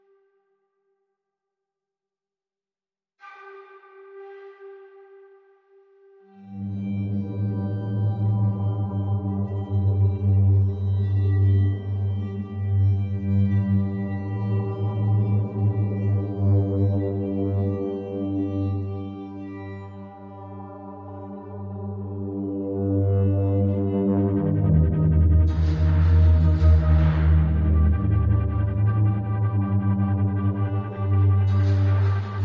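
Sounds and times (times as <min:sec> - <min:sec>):
synth pads: 0:06.4 - 0:32.4
strings: 0:06.5 - 0:32.4.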